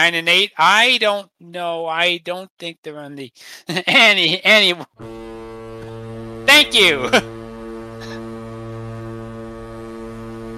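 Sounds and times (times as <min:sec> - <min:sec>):
speech: 0:00.0 - 0:05.4, 0:06.6 - 0:07.4
foghorn blast: 0:05.0 - 0:10.5.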